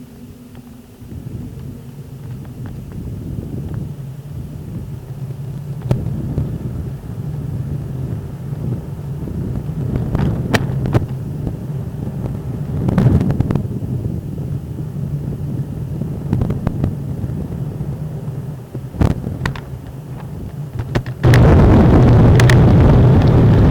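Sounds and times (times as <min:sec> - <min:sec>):
dark wind: 0:00.0 - 0:23.6.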